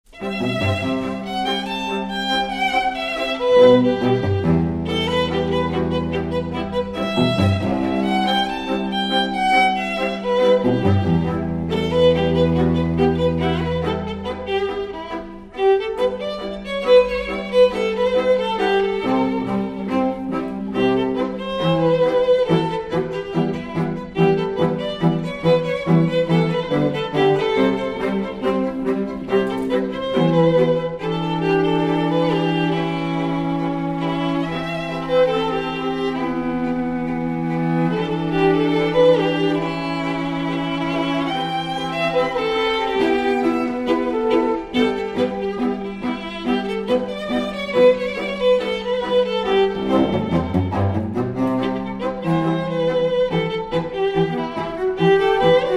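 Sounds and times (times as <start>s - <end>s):
strings: 0.1s - 55.7s.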